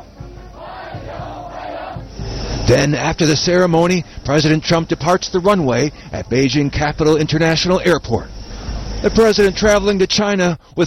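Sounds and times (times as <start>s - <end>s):
hundreds of young people chanting a welcome at a ceremony in China: 0.0s - 2.6s
speech: 2.7s - 8.4s, 9.0s - 10.8s.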